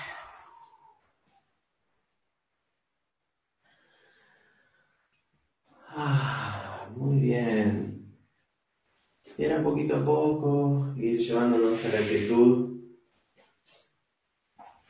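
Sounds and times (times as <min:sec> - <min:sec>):
deep breath in and out during a guided breathing exercise: 0:03.6 - 0:05.2, 0:05.8 - 0:07.0
speech: 0:09.4 - 0:12.7.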